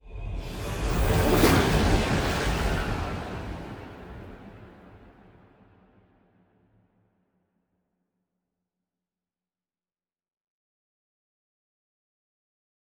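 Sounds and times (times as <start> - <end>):
titan ship moving: 0.8 - 5.1.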